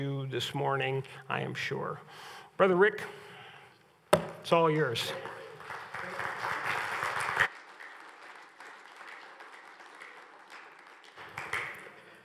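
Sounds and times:
speech: 0.0s - 3.3s, 4.4s - 5.3s
audience applause: 5.1s - 12.1s.

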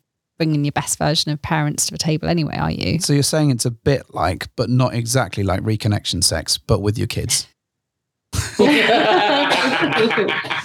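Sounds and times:
speech: 0.4s - 7.6s, 8.3s - 10.6s
laughter: 8.4s - 10.6s
person coughing in a loud raspy coughing fit: 9.4s - 10.6s.

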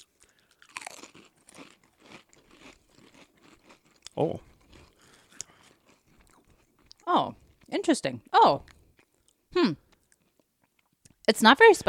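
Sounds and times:
crunching and chewing on a sriracha-flavored snack: 0.0s - 7.0s
speech: 4.2s - 4.5s, 7.1s - 8.8s, 9.6s - 9.8s, 11.3s - 11.8s.

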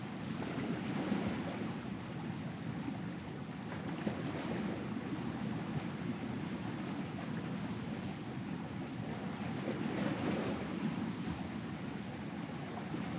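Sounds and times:
waves washing onto a beach in Portugal at night: 0.0s - 13.1s.

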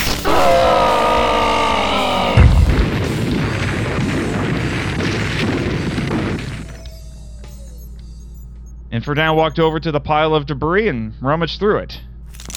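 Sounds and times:
lightning bolt blast: 0.0s - 6.9s
cliff face crumbling: 0.1s - 6.7s
speech: 9.1s - 12.1s.

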